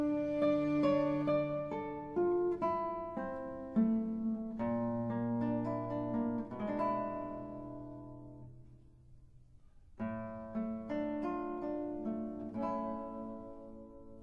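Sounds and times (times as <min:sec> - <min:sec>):
string orchestra: 0:00.0 - 0:02.6
guitar: 0:00.0 - 0:14.2.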